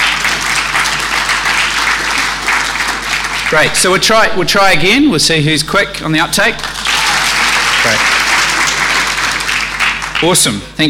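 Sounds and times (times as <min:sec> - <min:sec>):
audience round of applause: 0:00.0 - 0:03.9, 0:06.6 - 0:10.5
speech: 0:03.5 - 0:06.8, 0:07.8 - 0:08.2, 0:10.2 - 0:10.8.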